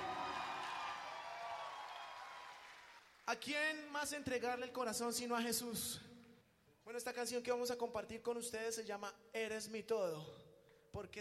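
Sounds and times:
faint crowd cheering: 0.0 - 3.2
audience applauding: 0.0 - 3.4
speech: 3.3 - 6.1, 6.9 - 11.2.

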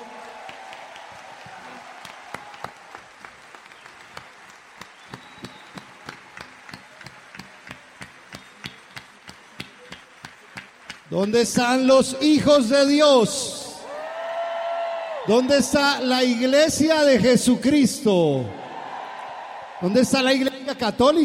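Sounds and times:
audience applause: 0.0 - 11.9, 13.8 - 16.4, 18.5 - 21.2
speech: 11.1 - 13.6, 15.3 - 18.6, 19.8 - 21.2.

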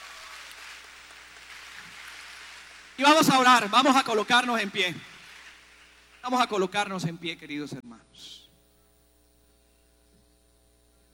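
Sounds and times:
audience applauding: 0.0 - 6.8
speech: 3.0 - 5.1, 6.2 - 8.4.

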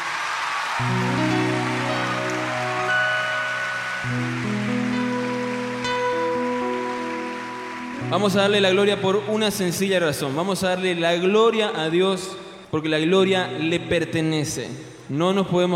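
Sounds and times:
audience applauding: 0.0 - 10.4
speech: 0.8 - 1.0, 8.1 - 15.7.

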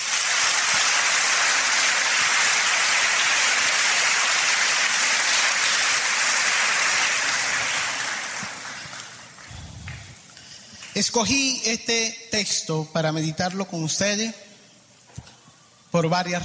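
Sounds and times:
loud audience applause: 0.0 - 11.0
speech: 11.0 - 14.4, 15.9 - 16.4.

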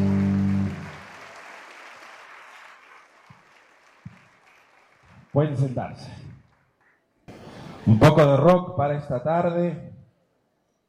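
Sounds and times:
audience applause: 0.0 - 5.8
speech: 5.4 - 6.3, 7.9 - 9.9.

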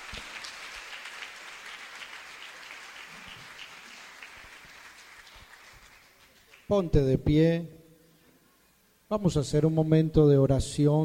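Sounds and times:
audience applause: 0.0 - 6.7
speech: 6.7 - 7.8, 9.1 - 11.0.

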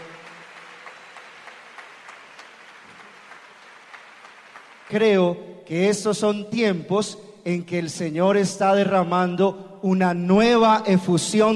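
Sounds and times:
audience applause: 0.0 - 5.2
speech: 4.9 - 11.5.

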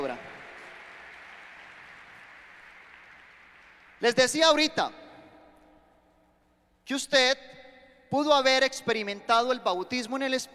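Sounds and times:
audience applause: 0.0 - 4.6
speech: 4.0 - 5.0, 6.9 - 10.5.

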